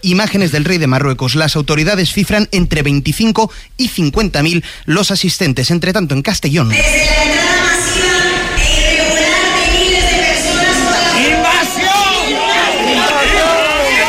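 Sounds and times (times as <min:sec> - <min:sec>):
speech: 0:00.0 - 0:08.0
crowd chanting and shouting interrupting speech: 0:06.7 - 0:14.0.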